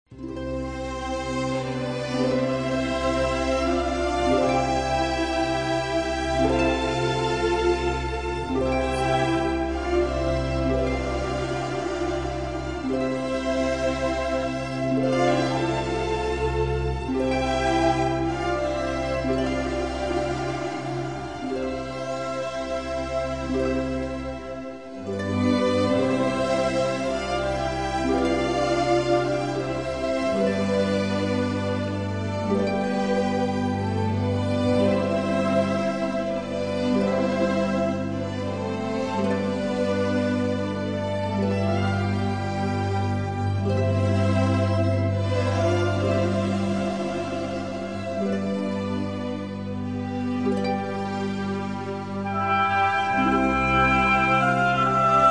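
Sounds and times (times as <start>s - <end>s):
Christmas string music: 0.0s - 55.2s.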